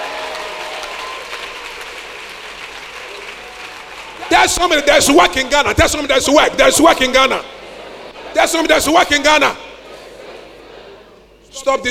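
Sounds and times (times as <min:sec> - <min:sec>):
audience clapping: 0:00.0 - 0:05.3
speech: 0:04.4 - 0:07.6, 0:08.4 - 0:09.6, 0:11.6 - 0:11.8.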